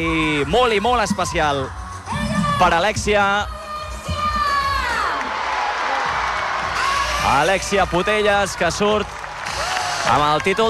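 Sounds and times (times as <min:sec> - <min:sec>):
speech: 0:00.0 - 0:01.8, 0:02.6 - 0:03.6, 0:07.2 - 0:09.2, 0:10.1 - 0:10.6
crowd cheering and ovation: 0:04.2 - 0:10.6.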